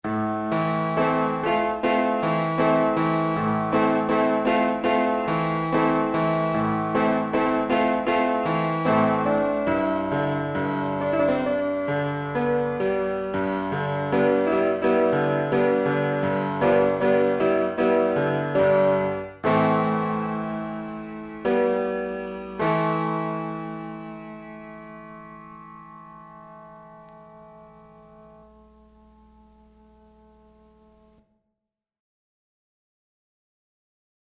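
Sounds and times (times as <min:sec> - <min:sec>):
piano: 0:00.0 - 0:31.3.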